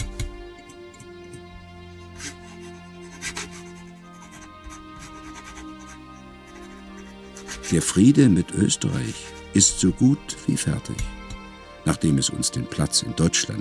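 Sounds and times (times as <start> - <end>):
pen scratching on paper writing a birthday letter: 2.2 - 9.8
speech: 7.7 - 11.2, 11.8 - 13.5.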